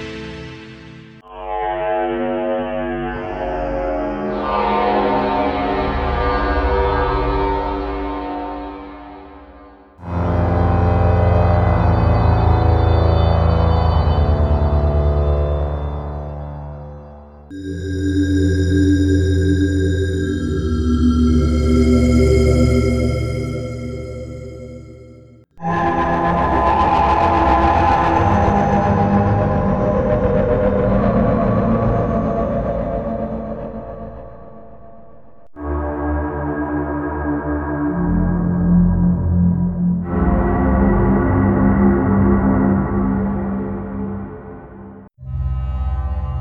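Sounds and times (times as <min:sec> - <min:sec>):
dark ambience: 0:01.1 - 0:46.3.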